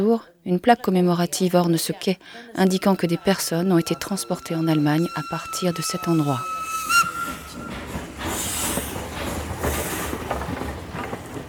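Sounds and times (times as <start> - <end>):
speech: 0.0 - 7.0
steam train rumbling leaving a station from a freight platform: 2.5 - 11.4
steam train whistle: 2.6 - 9.9
steam train steam hissing: 3.0 - 11.3.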